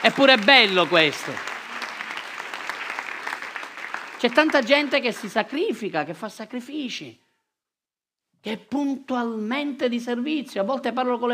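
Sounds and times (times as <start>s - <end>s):
speech: 0.0s - 1.5s, 4.2s - 7.2s, 8.4s - 11.3s
crowd clapping: 0.0s - 6.0s.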